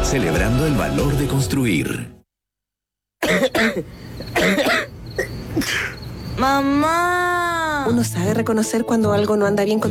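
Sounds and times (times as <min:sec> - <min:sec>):
speech: 0:00.1 - 0:02.2, 0:03.3 - 0:04.8, 0:05.6 - 0:09.8
person coughing harsh chesty coughs: 0:03.2 - 0:06.0.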